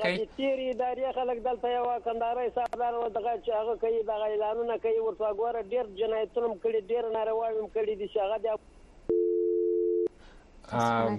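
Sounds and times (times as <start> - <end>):
speech: 0.0 - 8.7, 10.7 - 11.1
telephone busy tone after a caller's line was cut off: 9.1 - 10.1.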